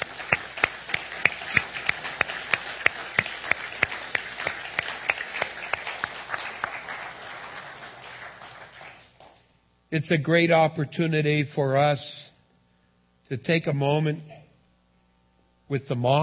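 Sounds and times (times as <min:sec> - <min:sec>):
audience applause: 0:00.0 - 0:09.4
sharp evenly spaced claps: 0:00.0 - 0:09.5
speech: 0:09.9 - 0:12.2, 0:13.3 - 0:14.4, 0:15.7 - 0:16.2.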